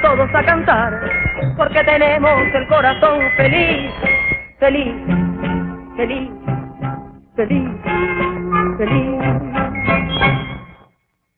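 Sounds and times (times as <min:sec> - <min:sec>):
children's song: 0:00.0 - 0:05.3, 0:07.4 - 0:10.7.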